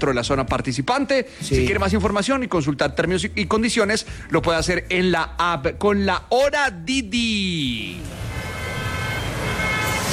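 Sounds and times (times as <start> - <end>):
speech: 0.0 - 8.2
traffic jam: 7.7 - 10.1
car horns: 8.0 - 10.1.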